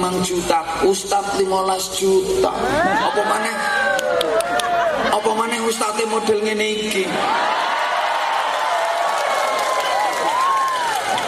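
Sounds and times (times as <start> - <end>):
speech: 0.0 - 4.0, 5.1 - 7.5
people whooping: 2.6 - 5.2, 7.2 - 11.2
audience applause during a speech at a public gathering: 3.8 - 5.1, 7.2 - 11.2.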